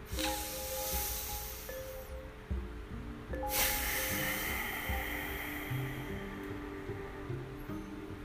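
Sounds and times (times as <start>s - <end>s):
ocean breath exhaled through the nose: 0.0s - 2.1s, 3.5s - 6.6s
low steady hum: 0.0s - 8.2s.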